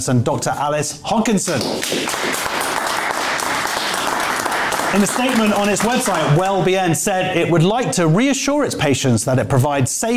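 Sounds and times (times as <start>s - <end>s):
speech: 0.0s - 2.4s, 4.9s - 10.1s
audience clapping: 1.5s - 6.7s.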